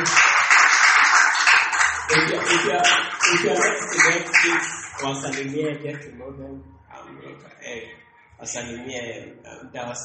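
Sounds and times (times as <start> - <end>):
audience clapping: 0.0 - 6.0
speech: 2.1 - 10.0.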